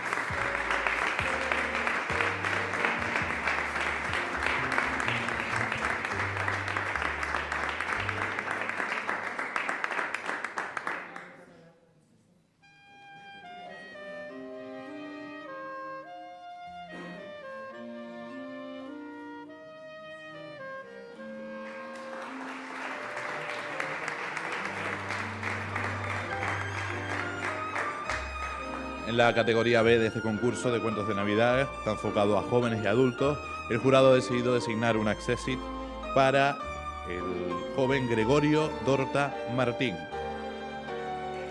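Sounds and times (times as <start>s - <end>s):
audience applause: 0.0s - 11.4s, 21.6s - 29.9s
speech: 29.1s - 40.1s.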